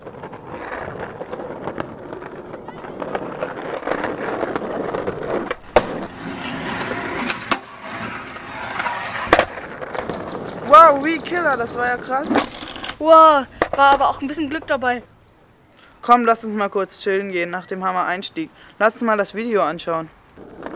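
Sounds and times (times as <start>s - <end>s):
backside lipslide scraping across a rail or ledge: 0.0s - 14.1s, 20.4s - 20.7s
skateboard wheels rolling: 0.0s - 15.6s, 20.2s - 20.7s
speech: 11.5s - 15.1s, 16.0s - 20.2s.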